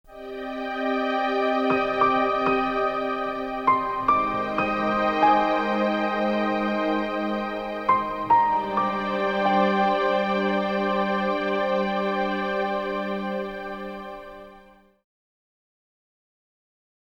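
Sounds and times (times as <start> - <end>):
music: 0.0 - 15.0.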